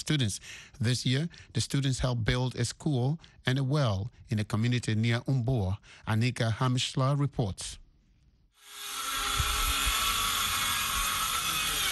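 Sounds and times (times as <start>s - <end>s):
speech: 0.0s - 7.8s
power drills roaring in the village of Guidemartin: 8.6s - 11.8s.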